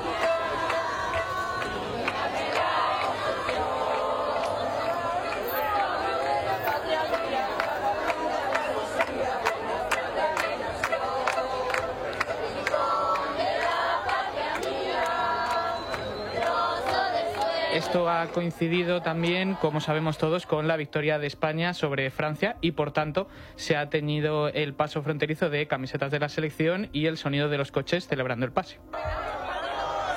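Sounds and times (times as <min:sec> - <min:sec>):
crowd chanting an anthem at a border crossing: 0:00.0 - 0:20.6, 0:28.9 - 0:30.1
massed voices and chatter: 0:00.0 - 0:21.9, 0:28.7 - 0:30.1
speech: 0:17.9 - 0:29.2.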